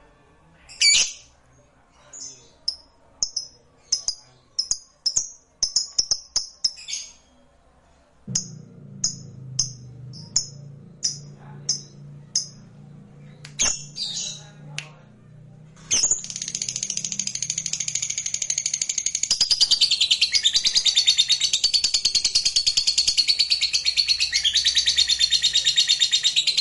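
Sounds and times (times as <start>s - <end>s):
lovebird chirping: 2.6s - 7.4s, 8.3s - 14.5s, 15.8s - 26.5s
low hum: 8.2s - 19.0s.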